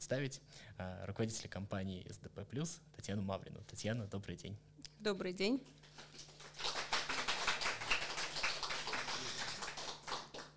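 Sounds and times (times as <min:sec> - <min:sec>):
speech: 0:00.1 - 0:06.3
audience in a hall applauding: 0:06.1 - 0:10.5.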